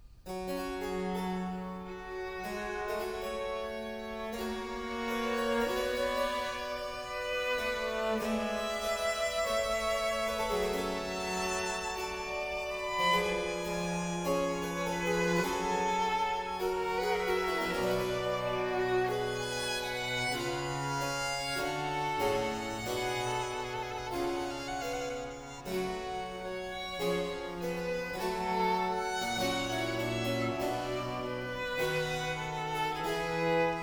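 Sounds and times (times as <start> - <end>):
trio sonata for two violins and continuo: 0.0 - 33.8.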